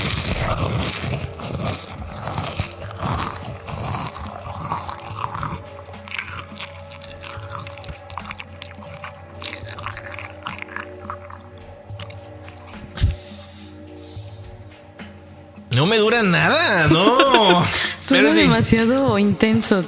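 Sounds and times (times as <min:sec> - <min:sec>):
chewing crunchy corn snack chips: 0:00.0 - 0:13.6
speech: 0:15.8 - 0:19.8
laughter: 0:16.6 - 0:18.6.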